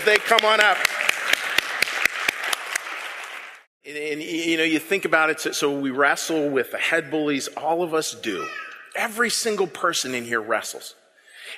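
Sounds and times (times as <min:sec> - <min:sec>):
speech: 0:00.0 - 0:01.0, 0:03.9 - 0:11.5
audience applauding at a service as a choir arrives: 0:00.0 - 0:03.7.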